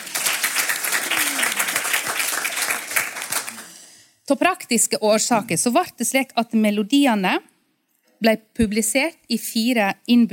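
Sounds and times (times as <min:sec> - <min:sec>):
audience applause: 0:00.0 - 0:03.8
speech: 0:04.3 - 0:07.5, 0:08.2 - 0:10.3.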